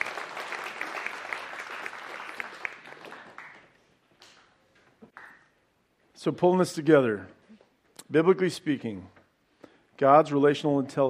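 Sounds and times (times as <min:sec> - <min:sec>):
crowd applauding: 0:00.0 - 0:04.4
speech: 0:06.2 - 0:07.4, 0:08.1 - 0:09.2, 0:10.0 - 0:11.0.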